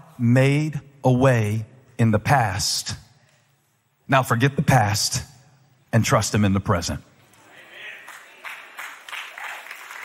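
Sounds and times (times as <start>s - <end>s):
speech: 0.2s - 3.0s, 4.1s - 5.3s, 5.9s - 7.1s
audience clapping: 7.6s - 10.0s.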